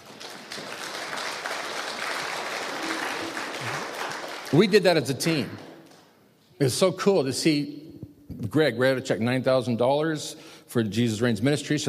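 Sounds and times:
church audience clapping: 0.0 - 6.2
speech: 4.5 - 5.6, 6.6 - 7.8, 8.4 - 11.8.

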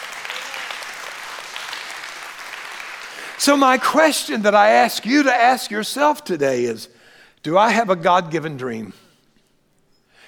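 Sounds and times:
audience hand clapping: 0.0 - 4.0
speech: 3.4 - 9.0.

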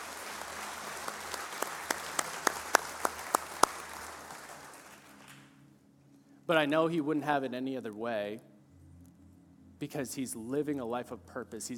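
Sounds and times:
audience applause: 0.0 - 5.6
speech: 6.5 - 8.5, 9.8 - 11.7.

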